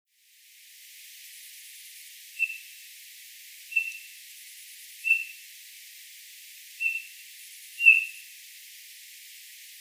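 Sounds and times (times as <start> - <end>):
Eurasian bullfinch Pyrrhula pyrrhula whistled calls: 3.7 - 4.0, 5.1 - 5.3, 6.8 - 7.1, 7.8 - 8.2.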